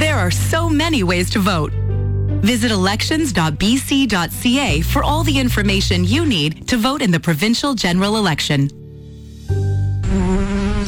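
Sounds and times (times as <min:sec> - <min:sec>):
speech: 0:00.2 - 0:01.8, 0:02.4 - 0:08.8
buzzing insects in a pest control ad: 0:10.0 - 0:10.8.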